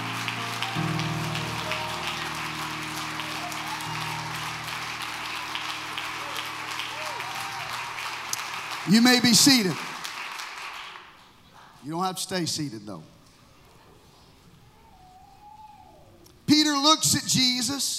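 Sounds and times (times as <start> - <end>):
audience clapping hands loudly: 0.0 - 11.4
speech: 8.9 - 9.9, 11.9 - 13.2, 16.5 - 17.9.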